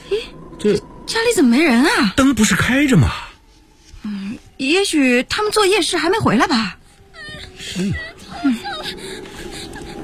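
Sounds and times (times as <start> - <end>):
speech: 0.6 - 3.3, 4.6 - 6.8, 7.8 - 9.0
sick child whimpering behind a door in a radio drama: 7.1 - 10.0.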